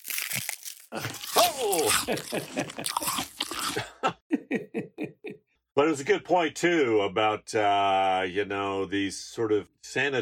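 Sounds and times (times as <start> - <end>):
crunching bite through living bone and muscle: 0.0 - 3.8
speech: 0.9 - 5.1, 5.8 - 10.2.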